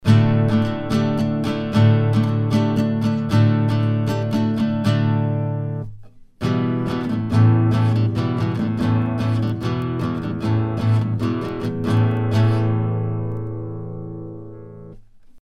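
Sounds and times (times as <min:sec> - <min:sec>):
guitar recorded with Sontronics STC 3x in cardioid: 0:00.0 - 0:15.4.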